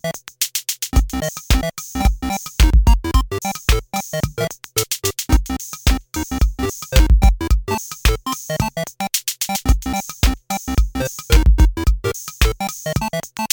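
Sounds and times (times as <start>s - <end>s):
beeping boogie music: 1.2s - 4.5s, 5.3s - 13.5s.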